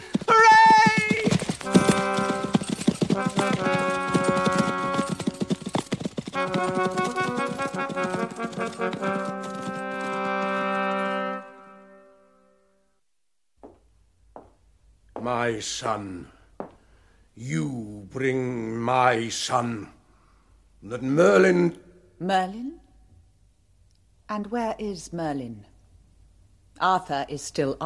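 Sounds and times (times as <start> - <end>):
horse galloping: 0.0 - 11.6
speech: 15.2 - 16.4, 17.4 - 20.0, 20.8 - 22.8, 24.3 - 25.7, 26.8 - 27.8.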